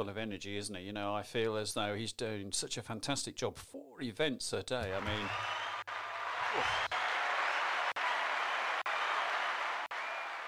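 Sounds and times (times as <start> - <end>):
speech: 0.0 - 5.6, 6.5 - 6.8
applause sound effect of a crowd clapping: 4.9 - 10.4.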